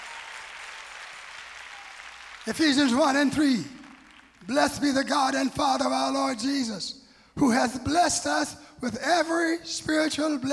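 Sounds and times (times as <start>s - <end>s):
audience clapping hands: 0.0s - 5.0s
speech: 2.4s - 3.8s, 4.5s - 10.5s.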